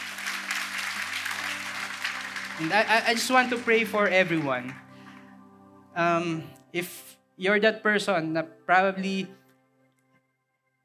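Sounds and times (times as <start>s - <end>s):
congregation applauding God during a church service: 0.0s - 5.4s
speech: 2.6s - 4.8s, 6.0s - 9.4s.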